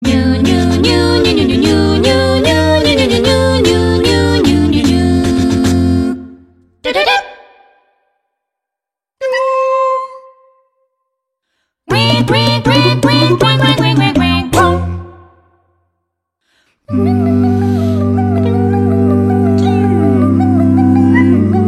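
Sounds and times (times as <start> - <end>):
a cappella vocal sound effect: 0.0 - 7.3, 11.9 - 15.4, 16.7 - 21.6.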